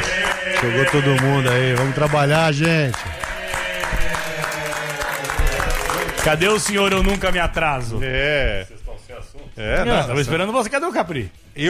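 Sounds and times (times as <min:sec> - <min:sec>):
applause from a group: 0:00.0 - 0:07.4
speech: 0:00.6 - 0:03.1, 0:06.2 - 0:08.8, 0:09.6 - 0:11.6.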